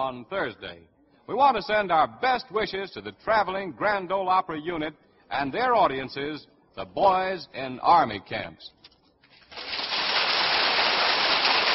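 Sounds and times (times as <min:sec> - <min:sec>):
speech: 0:00.0 - 0:08.8
studio audience applause: 0:09.6 - 0:11.7.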